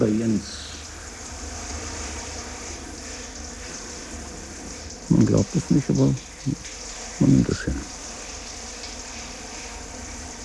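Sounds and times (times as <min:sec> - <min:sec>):
shower water running: 0:00.0 - 0:10.4
speech: 0:05.2 - 0:08.0.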